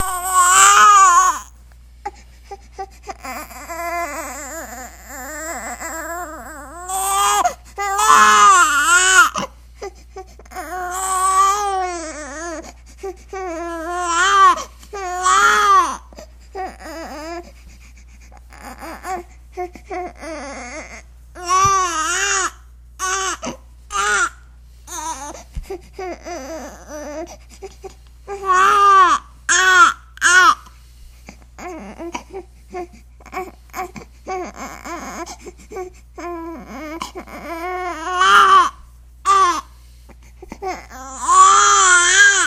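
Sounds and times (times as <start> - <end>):
baby crying: 0.0 - 1.5, 3.1 - 9.5, 10.5 - 12.7, 13.4 - 17.4, 18.5 - 19.3, 19.9 - 25.4, 26.0 - 27.4, 28.4 - 30.6, 33.2 - 35.4, 36.2 - 39.7, 40.5 - 42.4.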